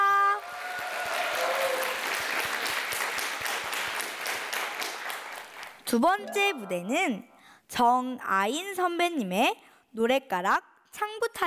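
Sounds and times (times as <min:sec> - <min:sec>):
audience applause: 0:00.4 - 0:05.8
speech: 0:05.9 - 0:11.4.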